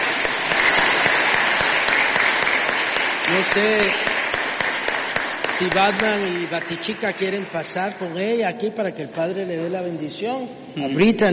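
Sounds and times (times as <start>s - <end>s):
audience applause for birthday girl: 0.0s - 8.6s
speech: 3.3s - 4.2s, 5.6s - 11.3s.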